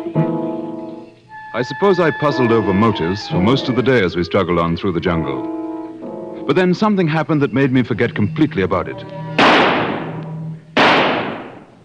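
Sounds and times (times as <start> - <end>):
speech: 1.5 - 5.6, 6.5 - 9.2
gunshot blasts shooting an antelope in a radio drama sound effect: 9.4 - 10.2, 10.8 - 11.8.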